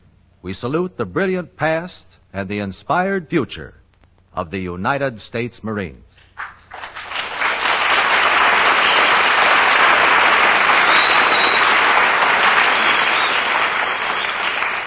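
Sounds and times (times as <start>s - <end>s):
speech: 0.4s - 3.8s, 4.4s - 6.5s
studio audience applause: 6.4s - 14.8s.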